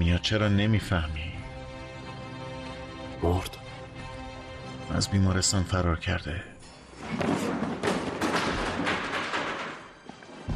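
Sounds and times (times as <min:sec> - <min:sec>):
speech: 0:00.1 - 0:01.4, 0:03.2 - 0:03.6, 0:04.9 - 0:07.5
chair falling over: 0:06.9 - 0:10.5.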